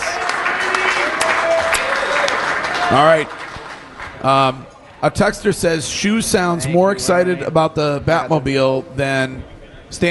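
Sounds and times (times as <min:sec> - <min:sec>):
audience applause: 0:00.0 - 0:04.4
speech: 0:02.9 - 0:03.4, 0:04.2 - 0:10.0.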